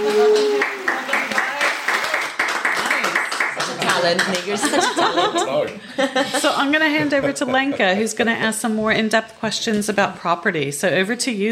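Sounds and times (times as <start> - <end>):
applause sound effect from soundboard button: 0.0 - 4.7
laughter: 4.0 - 8.1
speech: 4.0 - 11.5.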